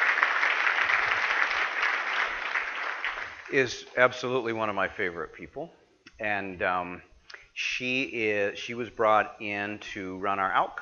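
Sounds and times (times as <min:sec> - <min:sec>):
audience clapping at a leadership conference opening session: 0:00.0 - 0:03.8
speech: 0:03.5 - 0:10.7.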